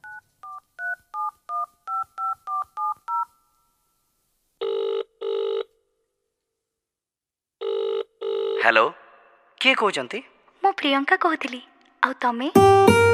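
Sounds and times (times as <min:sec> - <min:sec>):
telephone keypad tones as a number is dialed: 0:00.0 - 0:03.4
telephone ringing tones: 0:00.0 - 0:03.5, 0:04.6 - 0:05.7, 0:07.6 - 0:08.6
speech: 0:08.6 - 0:09.0, 0:09.6 - 0:13.0.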